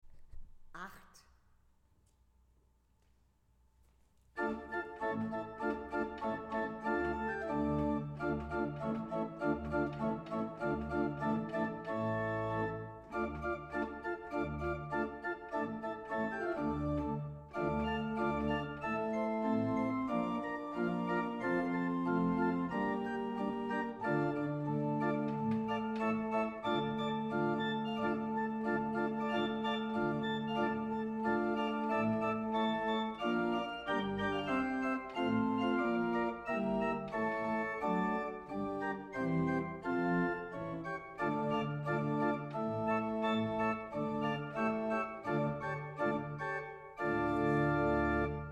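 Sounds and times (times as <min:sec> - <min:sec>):
Weigle pipe organ: 0:04.3 - 0:48.4.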